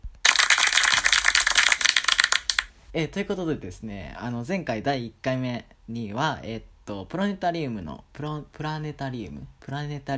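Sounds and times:
applause: 0:00.1 - 0:02.7
speech: 0:02.9 - 0:10.1.

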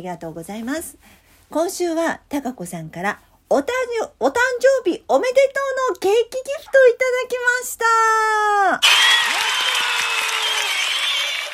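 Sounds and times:
speech: 0:00.0 - 0:09.5
hands clapping: 0:08.8 - 0:11.5.

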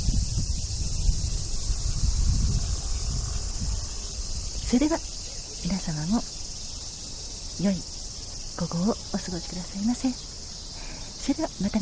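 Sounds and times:
cicadas singing: 0:00.0 - 0:11.8
speech: 0:04.7 - 0:06.4, 0:07.6 - 0:07.9, 0:08.6 - 0:10.3, 0:11.2 - 0:11.8.

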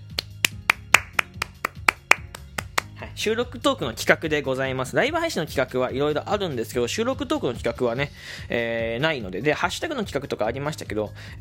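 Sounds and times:
person clapping: 0:00.0 - 0:03.0
speech: 0:03.2 - 0:11.3.

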